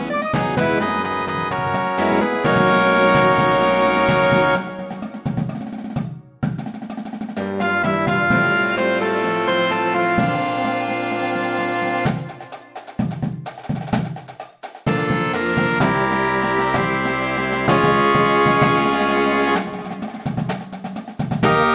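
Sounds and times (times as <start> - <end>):
percussion: 0.0 - 11.2, 11.9 - 21.7.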